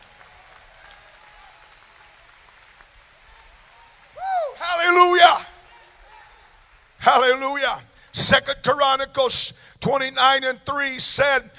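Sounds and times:
crowd clapping: 0:00.0 - 0:05.1
speech: 0:07.2 - 0:11.5.

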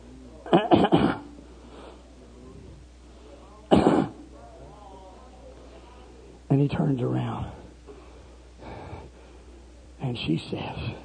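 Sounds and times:
throat clearing: 0:00.5 - 0:01.3, 0:03.7 - 0:04.2
speech: 0:06.6 - 0:07.5, 0:10.1 - 0:11.0.

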